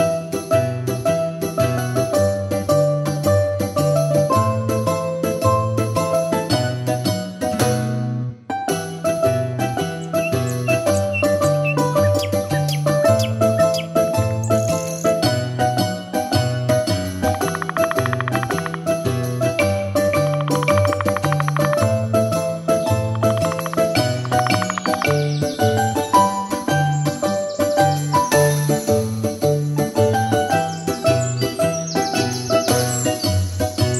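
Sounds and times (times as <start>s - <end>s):
tarantella instrumental: 0.0s - 33.9s.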